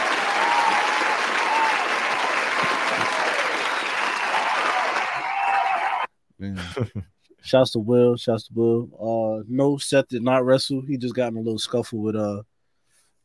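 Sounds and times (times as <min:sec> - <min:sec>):
applause: 0:00.0 - 0:06.1
speech: 0:06.4 - 0:12.5.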